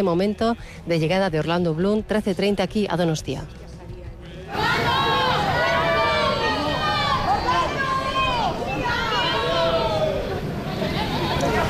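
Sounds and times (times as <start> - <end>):
speech: 0.0 - 3.7
crowd of fans screaming at a celebrity's arrival: 4.5 - 11.6
excited shouting: 4.5 - 11.6.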